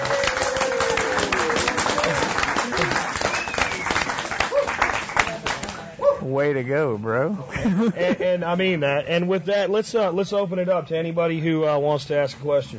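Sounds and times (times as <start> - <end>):
audience applause: 0.0 - 5.8
speech: 6.3 - 12.7.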